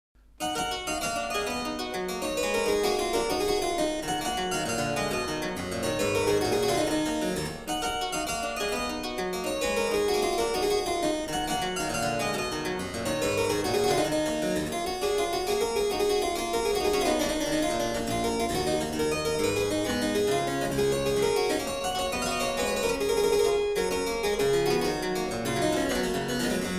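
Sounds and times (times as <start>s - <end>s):
harpsichord gigue: 0.4s - 26.7s.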